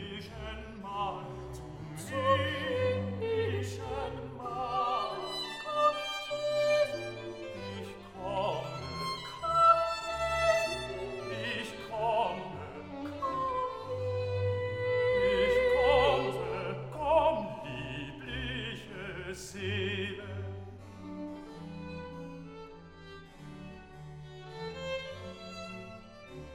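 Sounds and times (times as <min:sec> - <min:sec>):
opera aria: 0:00.0 - 0:21.2.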